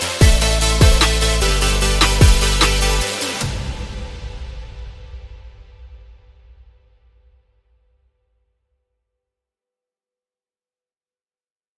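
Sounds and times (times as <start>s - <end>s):
melodic future bass music: 0.0s - 4.1s.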